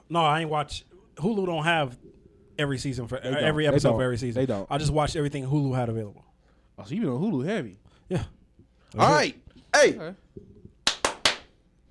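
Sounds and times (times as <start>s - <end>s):
speech: 0.1s - 10.5s
hand clap: 10.8s - 11.5s.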